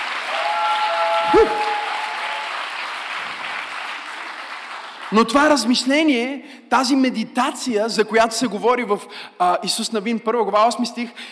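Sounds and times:
audience applause: 0.0s - 5.2s
speech: 1.3s - 1.7s, 5.1s - 11.2s.

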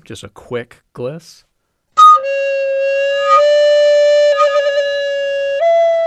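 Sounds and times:
speech: 0.1s - 1.5s
recorder playing: 2.0s - 6.0s.

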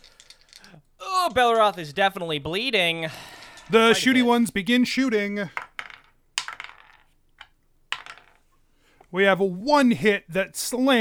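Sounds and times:
die rolled on hard table: 0.0s - 0.8s, 5.5s - 8.6s
speech: 0.7s - 5.6s, 9.1s - 10.9s.

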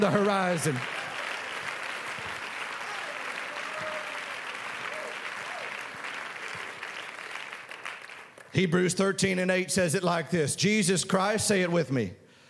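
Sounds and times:
speech: 0.0s - 1.0s, 8.6s - 12.2s
audience clapping hands: 0.0s - 8.8s.

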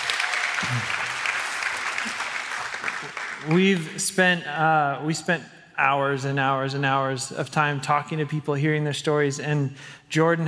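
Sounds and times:
audience applause: 0.0s - 3.9s
speech: 0.6s - 1.2s, 3.0s - 10.4s.

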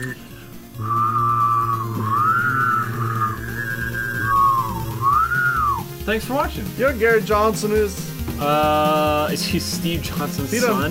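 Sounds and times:
speech: 0.0s - 1.0s, 6.1s - 10.8s
person humming: 0.8s - 5.8s
person whistling: 0.8s - 6.0s.

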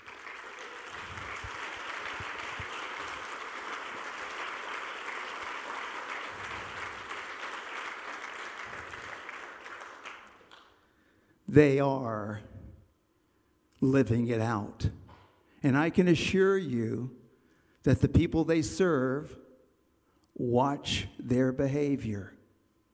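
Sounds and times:
crowd applauding: 0.0s - 10.8s
speech: 11.5s - 12.5s, 13.8s - 15.0s, 15.6s - 17.2s, 17.8s - 19.4s, 20.4s - 22.4s.

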